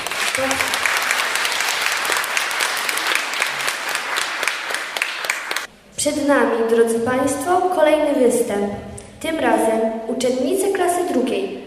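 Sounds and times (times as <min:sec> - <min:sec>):
audience applause: 0:00.0 - 0:05.7
speech: 0:00.4 - 0:00.8, 0:06.0 - 0:11.6.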